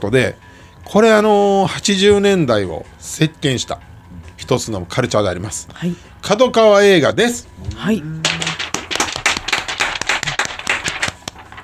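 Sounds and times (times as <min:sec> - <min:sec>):
speech: 0:00.0 - 0:08.2
hand clapping: 0:07.6 - 0:11.6.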